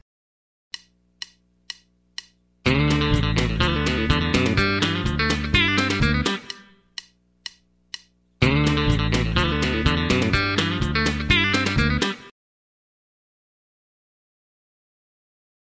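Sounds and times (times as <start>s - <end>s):
country rock music: 2.6s - 6.8s, 8.4s - 12.3s.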